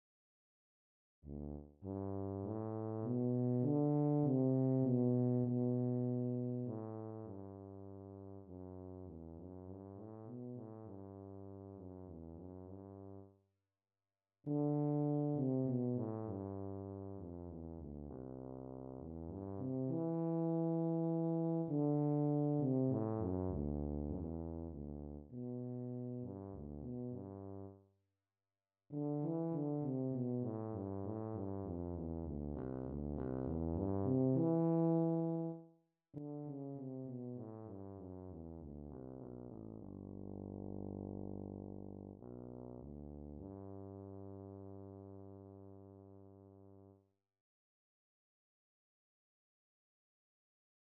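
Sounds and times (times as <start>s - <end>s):
tuba: 1.3s - 13.4s, 14.5s - 27.8s, 28.9s - 47.0s.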